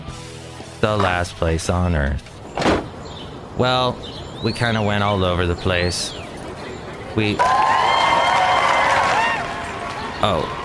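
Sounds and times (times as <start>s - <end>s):
speech: 0.8s - 2.3s, 3.6s - 6.2s, 7.2s - 7.6s, 10.2s - 10.6s
cheering: 7.2s - 10.6s
applause: 7.4s - 10.6s.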